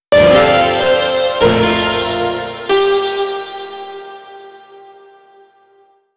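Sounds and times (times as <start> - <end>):
musical chord: 0.1 - 4.4.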